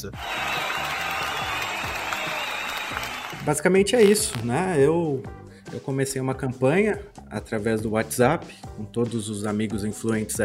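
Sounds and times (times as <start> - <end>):
speech: 0.0 - 0.6, 2.9 - 10.4
round of applause: 0.0 - 3.6.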